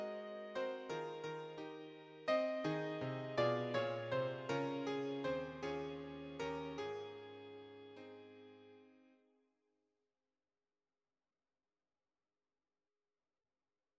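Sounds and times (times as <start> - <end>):
piano: 0.0 - 9.0.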